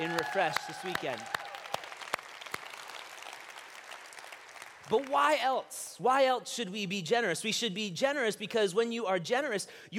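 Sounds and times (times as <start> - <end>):
speech: 0.0 - 1.4, 4.9 - 9.9
audience applause: 0.0 - 5.3.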